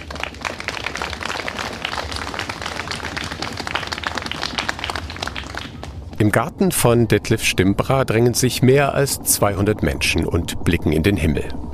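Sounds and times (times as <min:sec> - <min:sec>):
audience applause: 0:00.0 - 0:06.2
speech: 0:06.2 - 0:11.7.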